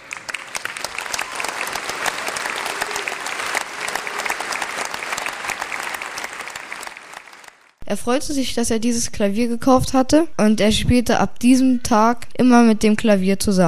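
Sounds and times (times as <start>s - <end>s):
audience applause: 0.0s - 7.8s
speech: 7.9s - 13.6s.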